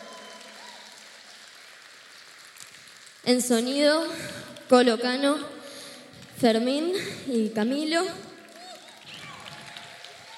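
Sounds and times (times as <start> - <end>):
audience applause: 0.0 - 3.3, 8.3 - 10.3
speech: 3.2 - 5.6, 6.4 - 8.3.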